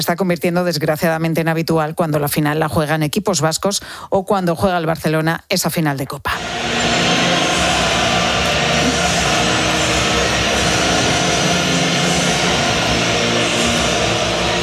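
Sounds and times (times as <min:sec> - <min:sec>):
speech: 0:00.0 - 0:07.1
crowd whistling during the national anthem: 0:06.4 - 0:14.6.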